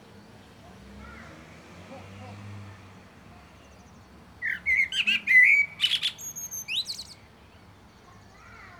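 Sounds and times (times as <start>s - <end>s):
common blackbird (Turdus merula) song: 3.6s - 8.7s.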